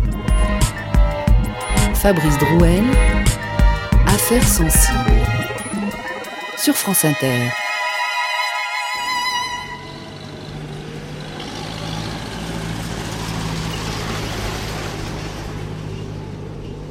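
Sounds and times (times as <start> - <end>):
giant trucks loaded with stones in the Atacama Desert, Chile: 0.0 - 6.5, 8.8 - 16.8
high whining tone: 0.0 - 11.3
speech: 2.0 - 3.2, 4.1 - 5.2, 6.6 - 7.6.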